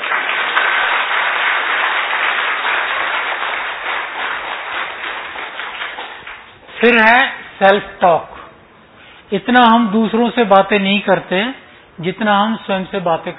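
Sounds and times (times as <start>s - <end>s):
audience clapping: 0.0s - 7.0s
speech: 6.8s - 8.3s, 9.3s - 13.3s.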